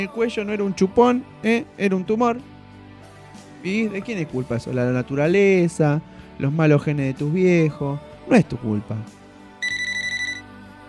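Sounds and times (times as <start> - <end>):
speech: 0.0 - 2.5, 3.6 - 9.2
telephone ringing with an electronic trill: 9.6 - 10.5.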